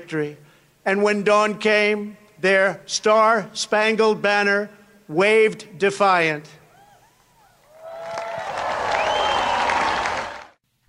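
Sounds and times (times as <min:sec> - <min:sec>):
speech: 0:00.0 - 0:06.6
light polite golf clap applause from a small crowd: 0:07.7 - 0:10.6.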